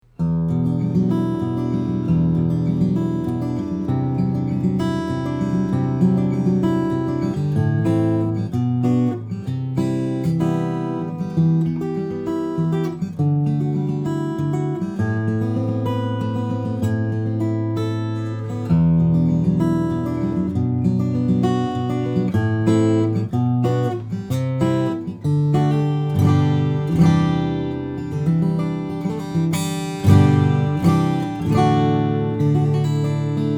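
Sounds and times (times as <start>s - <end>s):
steel-string flattop guitars: 0.1s - 33.5s.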